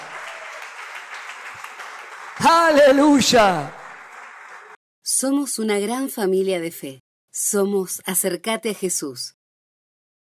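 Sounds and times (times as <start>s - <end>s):
audience applause: 0.0s - 4.8s
speech: 2.4s - 3.8s, 5.2s - 9.4s.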